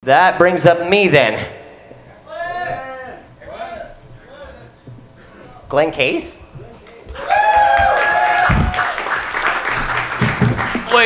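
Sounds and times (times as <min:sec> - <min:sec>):
speech: 0:00.0 - 0:01.6, 0:05.7 - 0:06.4
audience applauding: 0:06.8 - 0:11.0
high wavering cheer: 0:07.2 - 0:09.3.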